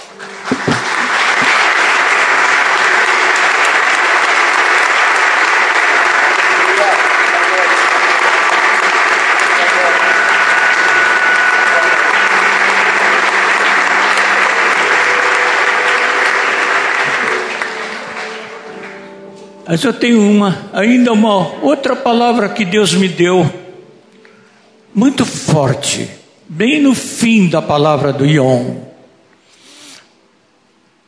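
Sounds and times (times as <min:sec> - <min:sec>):
audience applause: 0:00.0 - 0:19.4
speech: 0:19.7 - 0:23.6, 0:25.0 - 0:28.9.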